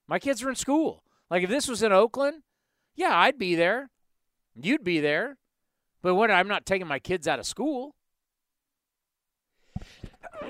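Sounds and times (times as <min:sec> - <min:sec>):
speech: 0:00.1 - 0:04.0, 0:04.6 - 0:05.4, 0:06.0 - 0:08.0, 0:10.2 - 0:10.4
person sneezing: 0:09.8 - 0:10.4.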